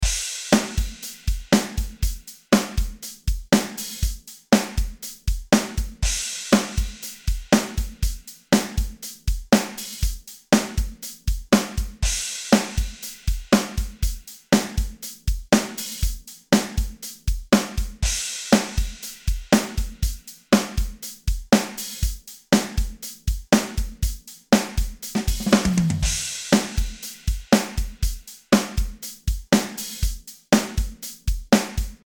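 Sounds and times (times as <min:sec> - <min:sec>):
drum: 0:00.0 - 0:32.0.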